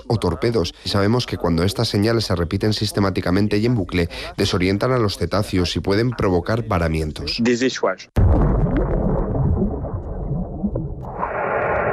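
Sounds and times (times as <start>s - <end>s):
speech: 0.0s - 8.6s
underwater bomb explosions: 8.2s - 11.9s.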